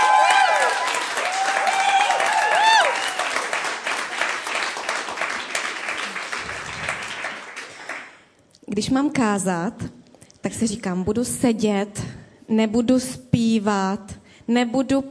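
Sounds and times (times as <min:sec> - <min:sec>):
audience applause for the band: 0:00.0 - 0:08.2
speech: 0:08.8 - 0:15.0.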